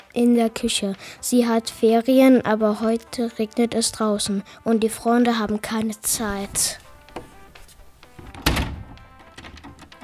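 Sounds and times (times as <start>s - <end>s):
speech: 0.2s - 6.8s
faint knocking and rustling while repairing door fittings: 6.1s - 10.0s
wooden thunk against a cabinet door: 8.2s - 10.0s.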